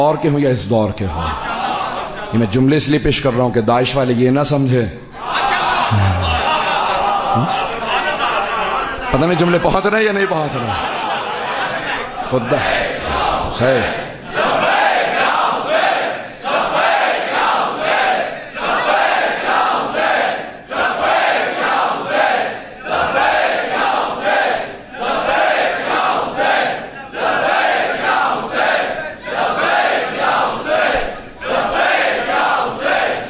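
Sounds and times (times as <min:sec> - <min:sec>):
speech: 0:00.0 - 0:01.5, 0:02.3 - 0:06.2, 0:07.4 - 0:07.7, 0:09.1 - 0:11.0, 0:12.3 - 0:12.8, 0:13.6 - 0:14.0
laughter: 0:01.2 - 0:02.4, 0:05.2 - 0:13.6
crowd chanting a slogan in unison: 0:05.1 - 0:09.1, 0:10.7 - 0:33.2.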